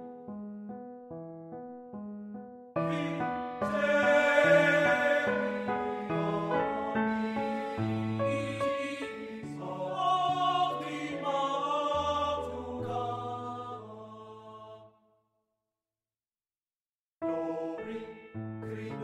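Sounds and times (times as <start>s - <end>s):
piano: 0.0s - 14.8s, 17.2s - 19.0s
person singing art song: 2.8s - 14.8s.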